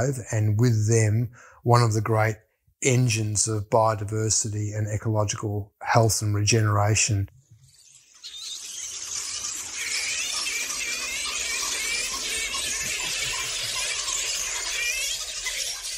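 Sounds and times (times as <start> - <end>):
speech: 0.0 - 7.4
flying foxes chattering and squealing: 7.6 - 15.9.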